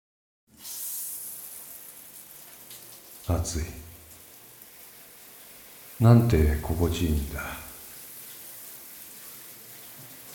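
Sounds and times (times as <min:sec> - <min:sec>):
shower water spraying: 0:00.5 - 0:10.3
speech: 0:03.3 - 0:03.8, 0:06.0 - 0:07.6.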